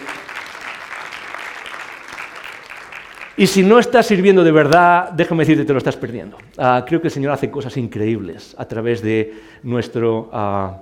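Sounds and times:
audience applause: 0.0s - 3.7s
speech: 3.4s - 10.8s.

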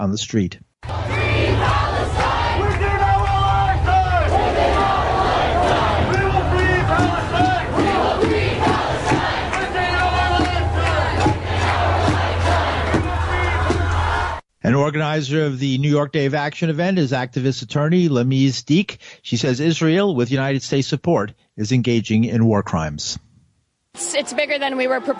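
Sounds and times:
speech: 0.0s - 1.0s, 14.7s - 23.3s, 24.0s - 25.1s
large protest crowd chanting: 0.8s - 14.4s, 24.0s - 25.1s
overlapping calls and cheers: 0.8s - 14.4s, 24.0s - 25.1s
steady low rumble: 0.9s - 14.1s.

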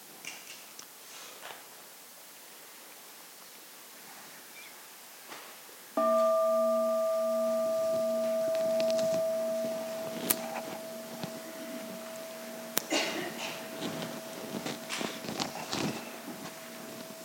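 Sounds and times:
soft hissing ambience: 0.0s - 17.2s
meditation bell ringing: 6.0s - 17.2s.

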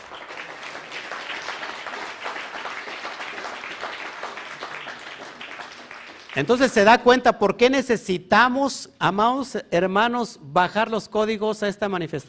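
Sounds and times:
audience applause: 0.0s - 6.9s
speech: 6.4s - 12.2s.

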